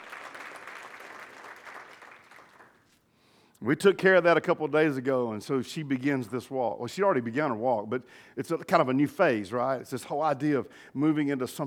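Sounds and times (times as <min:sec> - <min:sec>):
audience clapping: 0:00.0 - 0:03.0
speech: 0:03.6 - 0:11.6.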